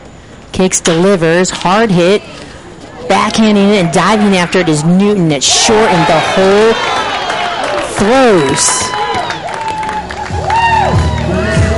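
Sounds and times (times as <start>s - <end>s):
speech: 0.6s - 2.4s, 3.1s - 7.0s, 8.0s - 9.0s
stadium crowd cheering: 3.3s - 11.7s.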